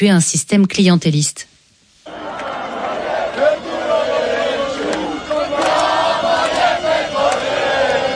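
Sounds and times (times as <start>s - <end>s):
speech: 0.0s - 1.5s
protest crowd shouting: 2.1s - 8.1s.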